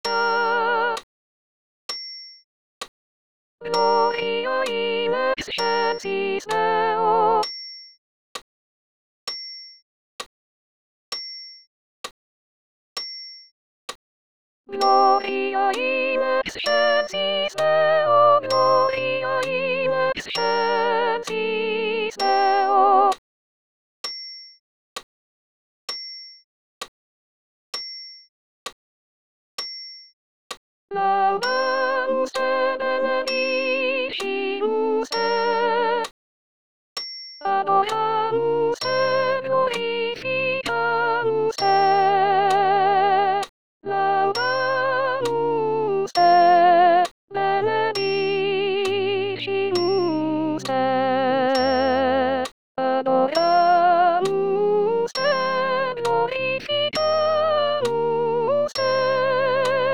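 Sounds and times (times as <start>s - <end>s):
soprano voice singing with accompaniment: 0.0s - 1.0s, 3.6s - 7.5s, 14.7s - 23.2s, 30.9s - 36.1s, 37.4s - 59.9s.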